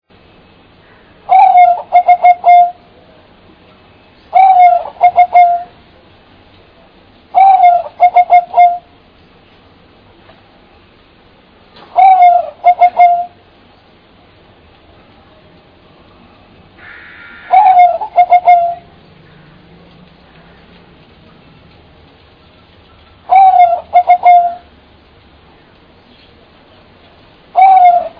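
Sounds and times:
bird call: 0.8 - 2.8, 4.2 - 5.8, 7.3 - 8.9, 11.8 - 13.4, 16.8 - 19.6, 22.9 - 24.7, 27.5 - 28.1.

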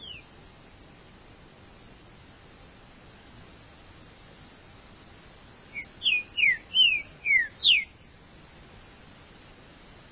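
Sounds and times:
Green-winged saltator song: 0.0 - 0.3, 5.7 - 8.0.

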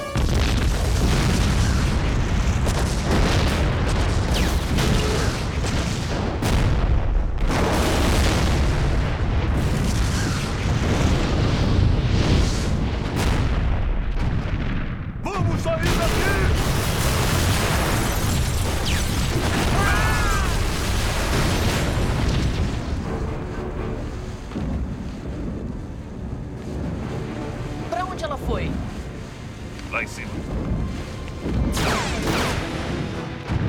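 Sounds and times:
roaring rumble of fire and debris: 0.2 - 15.4, 16.2 - 31.8
explosion of an explosive under an ammunition depot with gasoline: 0.2 - 23.3, 30.4 - 33.6.

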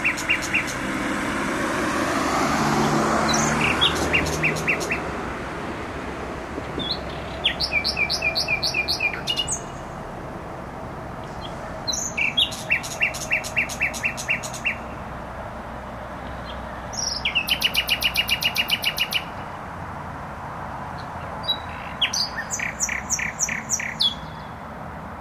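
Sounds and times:
nightingale singing: 0.0 - 0.9, 3.2 - 5.1, 6.8 - 9.9, 11.2 - 14.9, 16.3 - 19.4, 21.0 - 24.6
heavy motorway traffic rumble: 0.0 - 25.1.

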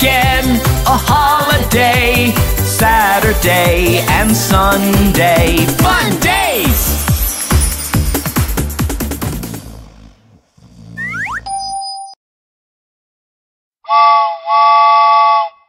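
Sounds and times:
plinking music: 0.0 - 9.5
speech: 3.4 - 6.8
train whistle toots: 13.9 - 15.6.

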